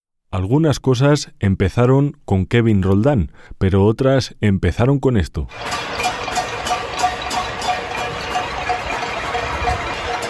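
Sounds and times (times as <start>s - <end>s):
speech: 0.3s - 6.4s
pots and pans banged in balcony protest: 5.5s - 10.2s.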